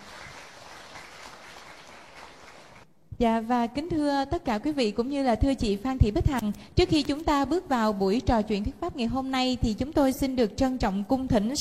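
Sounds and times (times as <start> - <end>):
crowd clapping to welcome a guest: 0.0 - 2.8
speech: 3.2 - 11.5.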